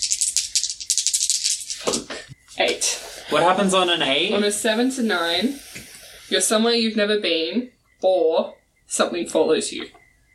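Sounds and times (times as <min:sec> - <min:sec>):
dice rolling: 0:00.0 - 0:02.2
speech: 0:02.8 - 0:10.0.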